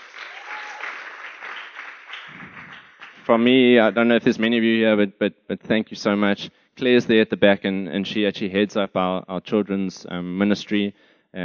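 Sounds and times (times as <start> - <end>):
audience applause: 0.0 - 3.4
speech: 3.3 - 11.4.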